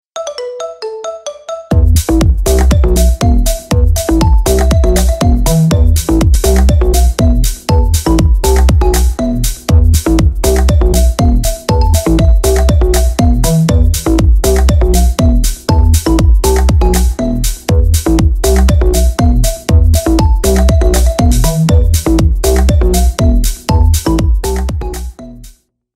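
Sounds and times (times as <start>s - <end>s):
Korean ringtone background music: 0.2s - 25.6s.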